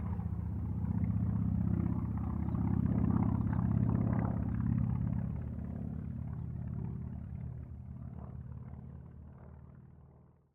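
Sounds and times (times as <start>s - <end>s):
CA-28 Ceres aircraft passing: 0.0s - 9.7s.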